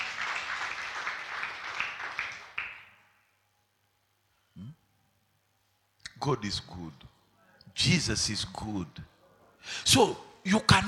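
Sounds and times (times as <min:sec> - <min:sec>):
audience clapping: 0:00.0 - 0:03.0
speech: 0:06.2 - 0:07.1, 0:07.8 - 0:10.8.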